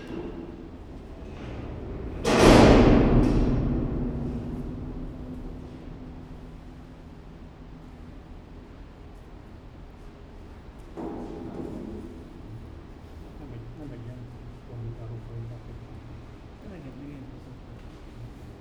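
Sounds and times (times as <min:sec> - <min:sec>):
grates opening at Nyíregyháza zoo: 0:00.0 - 0:07.1.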